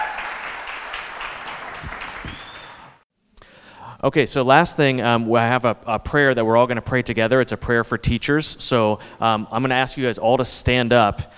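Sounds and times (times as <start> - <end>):
crowd applause: 0.0 - 3.0
low thuds: 1.6 - 2.9
faint whistle: 1.6 - 3.0
speech: 4.0 - 11.3.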